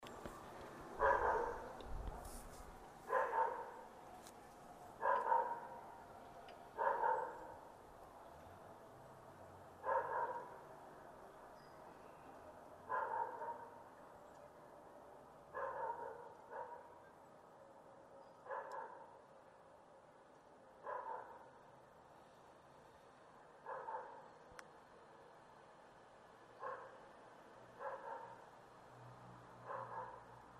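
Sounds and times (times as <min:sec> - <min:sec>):
dog barking: 0:01.0 - 0:01.8, 0:03.1 - 0:03.8, 0:05.0 - 0:05.8, 0:06.8 - 0:07.5, 0:09.8 - 0:10.6, 0:12.9 - 0:13.8, 0:15.5 - 0:17.0, 0:18.4 - 0:19.2, 0:20.8 - 0:21.5, 0:23.6 - 0:24.2, 0:26.6 - 0:27.0, 0:27.8 - 0:28.4, 0:29.6 - 0:30.4.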